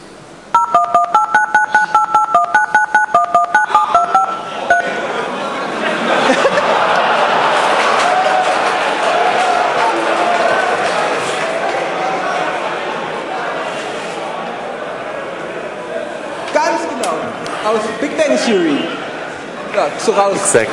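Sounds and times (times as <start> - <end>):
sitcom theme melody beeped out on telephone keypad tones: 0.6 - 4.9
crowd chatter: 3.3 - 20.7
laughter: 3.8 - 13.5.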